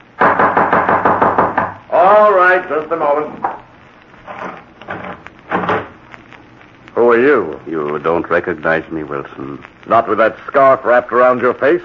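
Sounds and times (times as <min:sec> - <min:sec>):
loud knocking on a door: 0:00.2 - 0:01.8, 0:05.5 - 0:05.9
speech: 0:02.5 - 0:03.5, 0:07.2 - 0:11.8.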